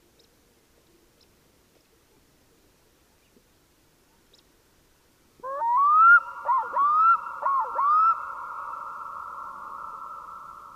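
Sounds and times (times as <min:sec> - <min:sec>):
black-throated loon wailing calls: 0:05.4 - 0:10.7.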